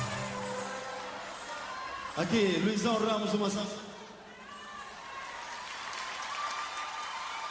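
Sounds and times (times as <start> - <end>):
audience applause at a live music event: 0.0 - 2.4, 4.7 - 7.4
speech: 2.2 - 3.9.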